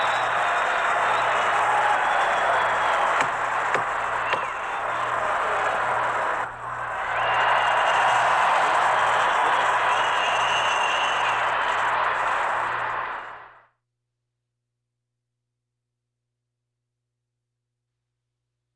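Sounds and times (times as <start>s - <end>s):
crowd cheering in short bursts: 0.0s - 13.7s.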